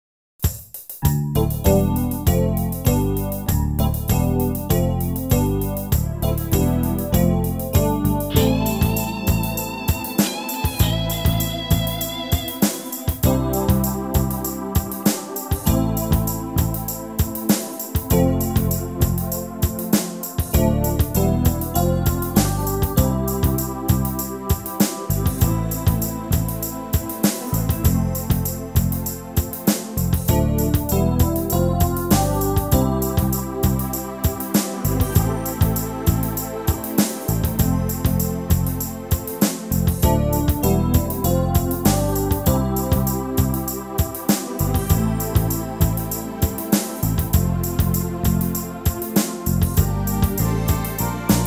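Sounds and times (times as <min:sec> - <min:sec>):
backing track for male vocals: 0:00.4 - 0:51.4.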